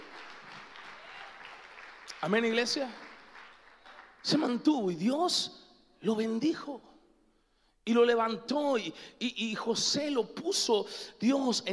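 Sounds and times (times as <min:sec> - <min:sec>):
audience applause: 0:00.0 - 0:04.3
speech: 0:02.2 - 0:03.0, 0:04.2 - 0:06.9, 0:07.9 - 0:11.7.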